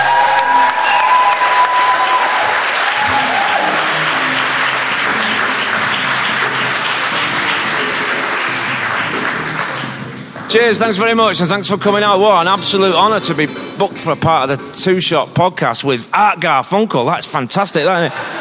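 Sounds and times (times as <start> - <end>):
cheers and whistles: 0.0 - 5.4
audience applause: 0.0 - 10.5
speech: 10.5 - 18.4.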